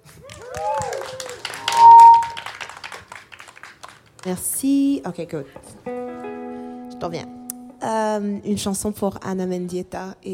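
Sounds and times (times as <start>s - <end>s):
audience applause: 0.0s - 4.2s
audience cheering: 0.2s - 2.5s
speech: 4.2s - 6.2s, 7.0s - 10.3s.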